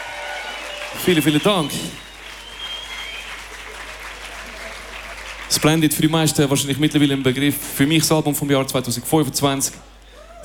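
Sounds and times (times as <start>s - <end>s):
audience applause: 0.0s - 7.6s
speech: 0.9s - 2.1s, 5.5s - 10.4s.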